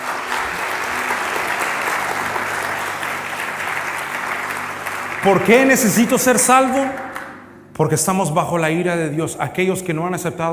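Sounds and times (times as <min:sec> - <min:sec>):
audience applause: 0:00.0 - 0:07.4
speech: 0:05.2 - 0:07.1, 0:07.8 - 0:10.5.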